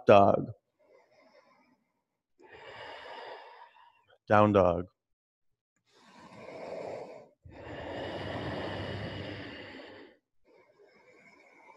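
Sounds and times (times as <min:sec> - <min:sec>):
speech: 0:00.0 - 0:00.6, 0:04.3 - 0:04.9
deep breath in during a vinyasa yoga flow: 0:02.4 - 0:04.1, 0:05.9 - 0:11.7.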